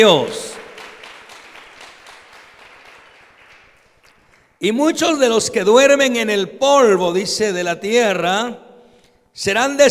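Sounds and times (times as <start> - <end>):
speech: 0.0 - 0.5, 4.6 - 8.6, 9.4 - 9.8
audience applauding: 0.0 - 4.6.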